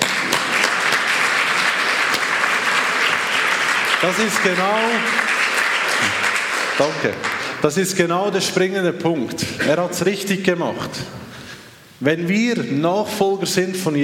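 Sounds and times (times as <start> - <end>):
audience applause: 0.0 - 7.7
speech: 4.0 - 5.2, 6.0 - 6.2, 6.8 - 11.2, 12.0 - 14.0.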